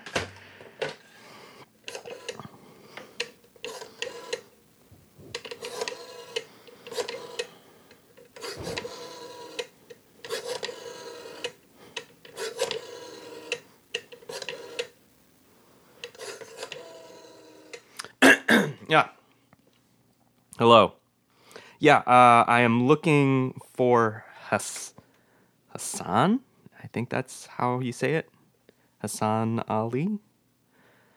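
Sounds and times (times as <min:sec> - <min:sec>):
rotary telephone being dialed: 0:01.8 - 0:15.1, 0:16.0 - 0:17.9
speech: 0:18.9 - 0:19.1, 0:20.6 - 0:20.9, 0:21.8 - 0:25.0, 0:25.8 - 0:28.3, 0:29.0 - 0:30.3.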